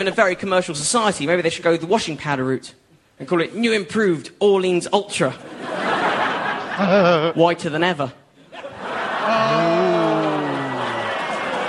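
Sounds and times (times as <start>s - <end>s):
speech: 0.0s - 5.9s, 6.8s - 8.2s
audience laughing: 5.5s - 7.5s, 8.4s - 11.6s
audience booing: 8.8s - 11.6s.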